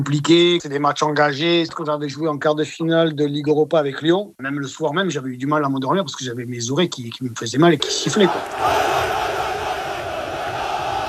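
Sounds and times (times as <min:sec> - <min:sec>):
speech: 0:00.0 - 0:08.9
huge crowd of football supporters roaring: 0:07.8 - 0:11.0.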